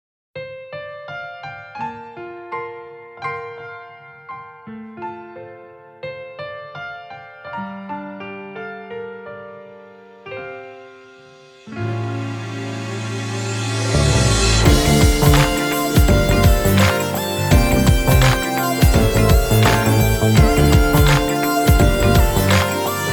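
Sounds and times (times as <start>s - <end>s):
instrumental music without vocal: 10.8s - 23.1s.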